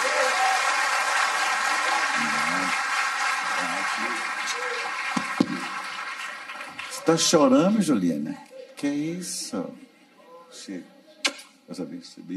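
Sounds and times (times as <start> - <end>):
audience applause: 0.0 - 7.7
speech: 7.1 - 9.8, 10.5 - 11.0, 11.7 - 12.3.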